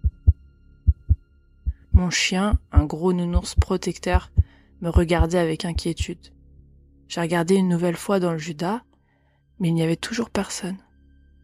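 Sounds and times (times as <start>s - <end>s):
pounding heartbeat: 0.0s - 6.1s
speech: 2.0s - 6.4s, 7.1s - 8.9s, 9.6s - 10.8s.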